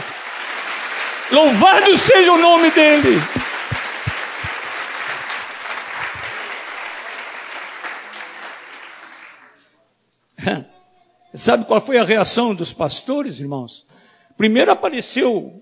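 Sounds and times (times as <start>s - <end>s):
audience applauding: 0.0s - 9.6s
speech: 1.3s - 3.4s, 11.4s - 15.5s.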